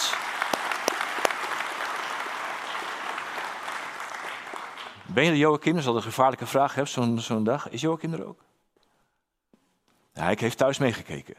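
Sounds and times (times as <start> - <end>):
audience applause: 0.0 - 5.1
speech: 5.1 - 8.5, 10.2 - 11.3.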